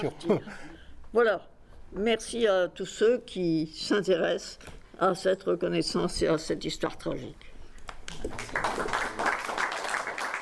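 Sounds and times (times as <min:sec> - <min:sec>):
speech: 0:00.0 - 0:07.5, 0:08.1 - 0:09.2
audience applause after a book presentation: 0:08.1 - 0:10.4.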